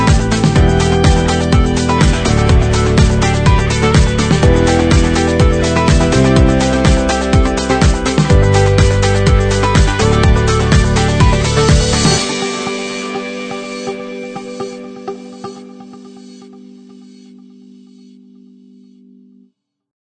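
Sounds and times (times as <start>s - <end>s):
drums in upbeat corporate music: 0.0s - 14.0s
electric guitar in upbeat corporate music: 0.0s - 18.7s
piano in upbeat corporate music: 0.0s - 18.9s
synthesizer in upbeat corporate music: 0.0s - 19.4s.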